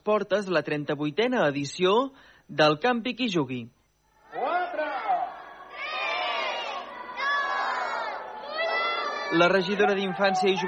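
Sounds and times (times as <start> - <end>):
speech: 0.0 - 4.5, 9.3 - 10.6
crowd of excited children entering fair: 4.2 - 10.6.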